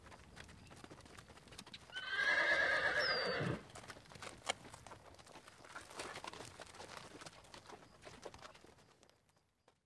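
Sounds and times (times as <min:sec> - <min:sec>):
horse whinnying: 0:01.9 - 0:03.6.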